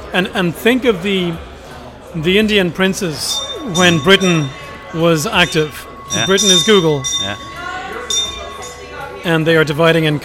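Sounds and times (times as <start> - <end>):
speech: 0.1 - 1.5, 2.1 - 8.2, 9.2 - 10.2
bell ringing: 3.1 - 9.7.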